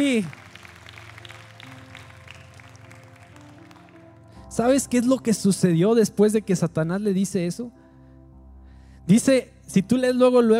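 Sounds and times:
speech: 0.0s - 0.4s, 4.6s - 7.8s, 9.1s - 10.5s
audience applauding: 0.0s - 4.4s.

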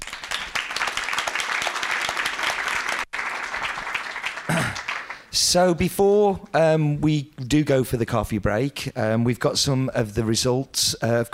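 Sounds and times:
audience round of applause: 0.0s - 5.3s
speech: 5.4s - 11.3s.

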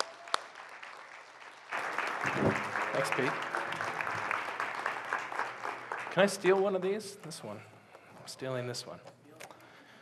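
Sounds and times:
audience applause welcoming a speaker: 0.0s - 6.9s
sharp clap: 1.7s - 6.7s
speech: 2.2s - 3.6s, 6.2s - 7.7s, 8.3s - 9.2s.

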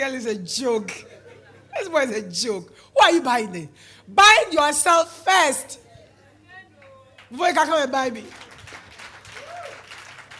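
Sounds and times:
speech: 0.0s - 1.2s, 1.8s - 5.8s, 7.3s - 8.5s
audience applause: 8.2s - 10.3s.

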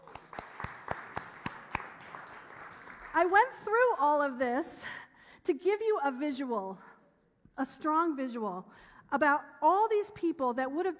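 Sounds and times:
audience applause: 0.0s - 3.3s
speech: 3.2s - 6.9s, 7.6s - 10.9s.

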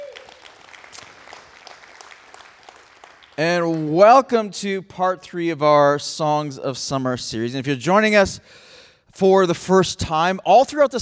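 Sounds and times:
church congregation applauding: 0.0s - 4.4s
speech: 3.4s - 10.9s.

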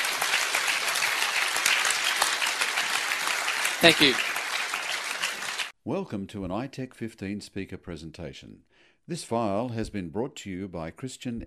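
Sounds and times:
audience applauding panelists at a conference session: 0.0s - 5.7s
speech: 3.8s - 4.3s, 5.8s - 11.4s.

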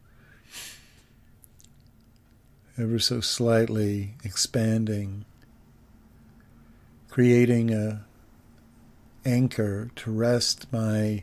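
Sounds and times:
person breathing out slowly during meditation: 0.0s - 1.2s
speech: 2.8s - 5.3s, 7.2s - 8.1s, 9.2s - 11.2s.

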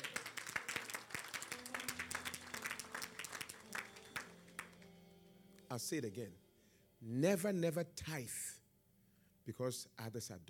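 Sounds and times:
audience applause: 0.0s - 4.9s
speech: 5.7s - 6.4s, 7.0s - 8.4s, 9.5s - 10.4s.

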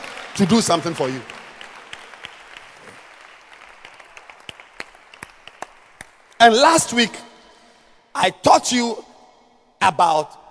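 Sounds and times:
audience applauding: 0.0s - 6.4s
speech: 0.4s - 1.4s, 6.4s - 7.3s, 8.2s - 9.1s, 9.8s - 10.4s.

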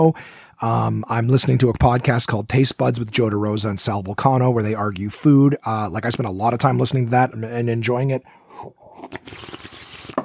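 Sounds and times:
speech: 0.0s - 9.6s
person slurping a drink: 8.8s - 10.2s.

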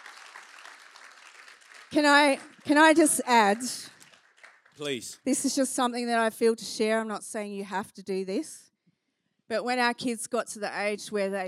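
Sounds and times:
audience applause: 0.0s - 5.1s
speech: 1.9s - 4.0s, 4.8s - 8.7s, 9.5s - 11.4s.

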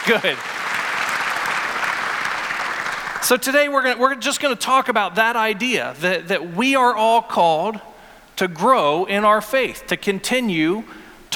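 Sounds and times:
speech: 0.0s - 0.6s, 3.2s - 11.0s
audience clapping: 0.0s - 3.4s.

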